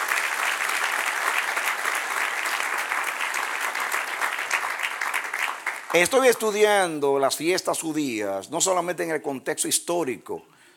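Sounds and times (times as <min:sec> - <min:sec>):
audience applause: 0:00.0 - 0:06.7
speech: 0:05.9 - 0:10.5.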